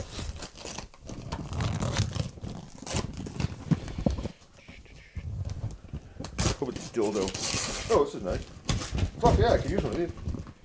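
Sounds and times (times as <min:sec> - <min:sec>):
styrofoam packing being rummaged through: 0:00.0 - 0:10.6
speech: 0:07.0 - 0:08.6, 0:09.2 - 0:10.3.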